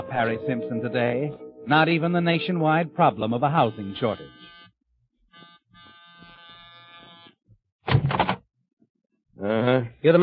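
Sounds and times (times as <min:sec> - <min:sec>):
speech: 0:00.1 - 0:04.4, 0:09.4 - 0:10.2
door buzzer held down: 0:03.5 - 0:07.4.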